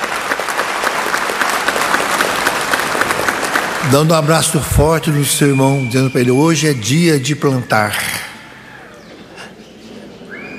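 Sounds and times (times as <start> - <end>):
audience applause: 0.0 - 8.3
speech: 3.8 - 8.2.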